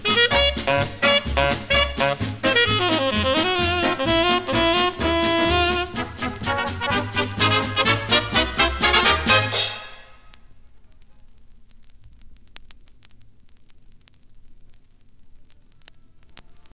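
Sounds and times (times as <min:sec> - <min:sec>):
jazz music: 0:00.0 - 0:10.3.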